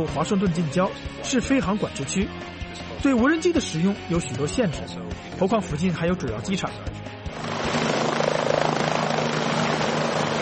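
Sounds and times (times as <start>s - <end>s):
speech: 0.0s - 7.2s
helicopter rotor blades thumping rhythmically overhead: 7.3s - 10.4s.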